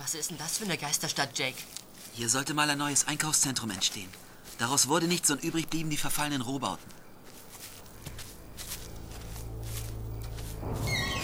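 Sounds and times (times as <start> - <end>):
speech: 0.1 - 7.0
rusty construction crane squeaking in wind: 10.2 - 11.2.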